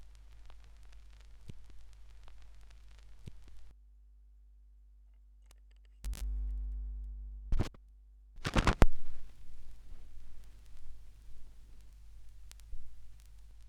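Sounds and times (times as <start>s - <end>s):
vinyl record noise: 0.0s - 3.7s, 6.1s - 7.8s, 8.4s - 13.6s.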